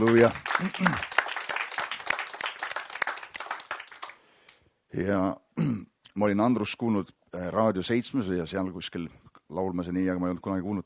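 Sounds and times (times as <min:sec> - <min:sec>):
speech: 0:00.0 - 0:01.1, 0:04.9 - 0:10.8
audience applause: 0:00.0 - 0:04.2.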